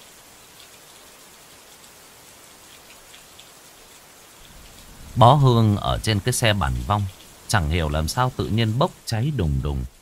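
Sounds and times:
heavy rain: 0.0s - 10.0s
thunder: 4.4s - 5.5s
speech: 5.2s - 10.0s.

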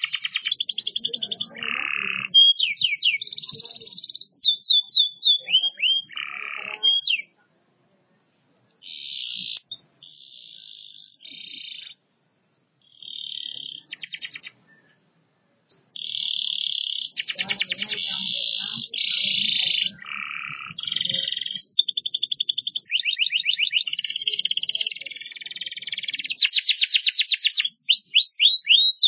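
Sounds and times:
canary singing: 0.0s - 7.4s, 8.0s - 29.0s.

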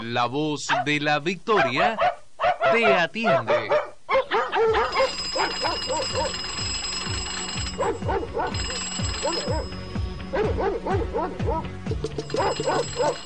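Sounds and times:
speech: 0.1s - 2.1s, 2.7s - 3.7s, 7.9s - 13.2s
telephone ringing: 4.9s - 10.5s, 12.0s - 13.2s.

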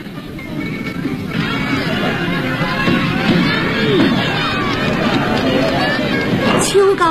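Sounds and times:
crowd cheering and laughing at a horse racecourse: 0.2s - 7.1s.

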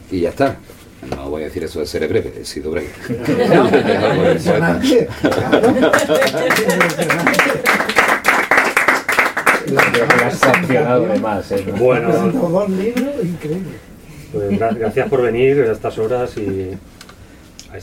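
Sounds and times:
speech: 0.1s - 7.8s, 9.7s - 16.9s
laughter: 3.0s - 8.0s, 14.4s - 15.5s
audience applause: 5.2s - 10.8s.

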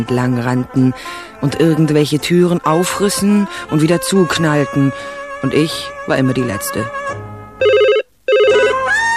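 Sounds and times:
speech: 0.0s - 7.2s
telephone ringing in bright warbling bursts: 7.6s - 9.0s.

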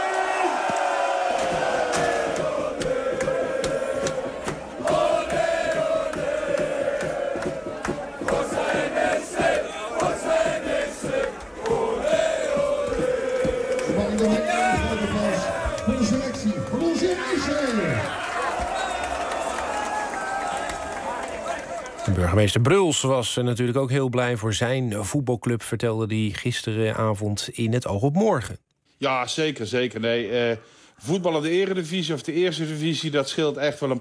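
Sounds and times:
people yelling over the din: 0.0s - 10.9s, 11.8s - 22.1s
chanting voices: 0.0s - 19.5s
football fans cheering and shouting: 0.0s - 22.4s
speech: 22.4s - 33.9s.

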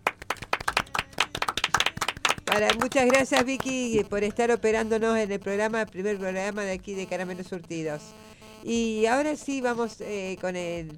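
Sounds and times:
a few people clapping in a radio studio: 0.0s - 4.6s
speech: 2.5s - 10.9s.

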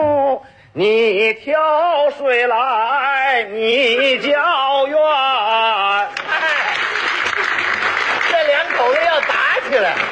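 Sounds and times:
speech: 0.0s - 5.8s
audience applause after singing: 6.2s - 10.1s.

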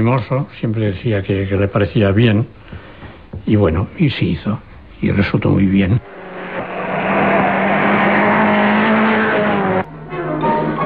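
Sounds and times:
speech: 0.0s - 2.8s, 3.4s - 6.2s
Spanish-built Pegaso Siluro car engine roaring during speed record trials: 6.0s - 9.9s.

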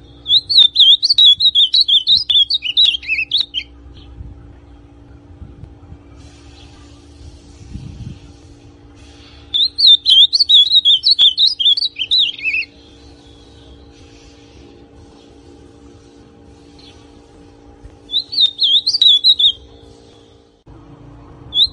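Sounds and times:
ultramarine grosbeak song: 0.0s - 4.1s, 9.2s - 14.3s, 18.0s - 20.6s, 21.5s - 21.7s.

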